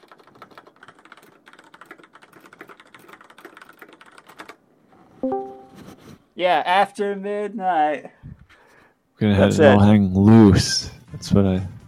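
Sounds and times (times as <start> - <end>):
typing on a computer keyboard: 0.0 - 4.6
brief tonal sound: 5.2 - 6.0
speech: 6.4 - 8.2, 9.2 - 11.7.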